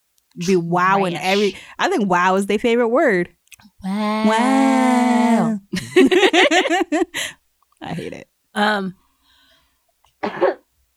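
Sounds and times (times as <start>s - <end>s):
speech: 0.4s - 9.0s, 10.2s - 10.6s
cough off microphone: 10.2s - 10.7s.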